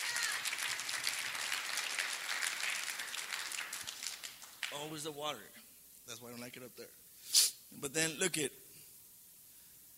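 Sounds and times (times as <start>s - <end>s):
crowd applauding: 0.0s - 5.0s
speech: 4.7s - 8.6s.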